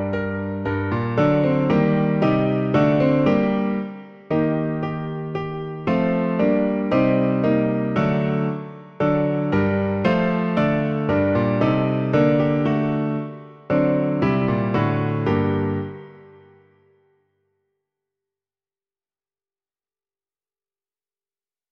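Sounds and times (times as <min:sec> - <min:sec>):
piano version of a Czech hymn: 0:00.0 - 0:17.1.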